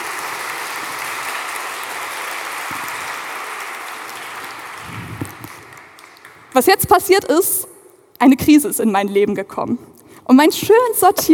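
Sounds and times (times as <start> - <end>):
audience applause: 0.0 - 6.6
speech: 6.6 - 11.3.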